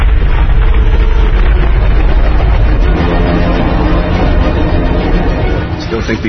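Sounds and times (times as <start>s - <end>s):
underwater earthquake rumble: 0.0s - 6.2s.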